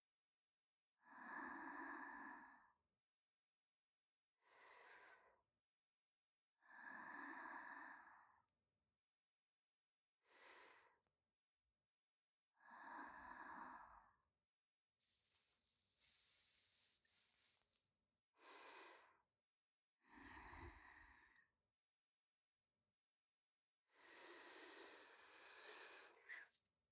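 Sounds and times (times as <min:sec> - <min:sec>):
person breathing in sleep in the left channel: 0:01.1 - 0:02.7, 0:06.6 - 0:08.3, 0:12.6 - 0:14.1, 0:16.0 - 0:17.5, 0:18.4 - 0:19.2, 0:20.0 - 0:21.5, 0:23.9 - 0:26.5.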